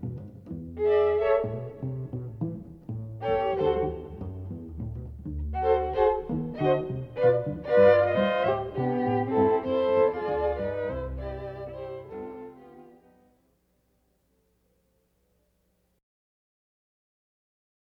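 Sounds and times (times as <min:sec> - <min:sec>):
string quartet: 0:00.0 - 0:13.4.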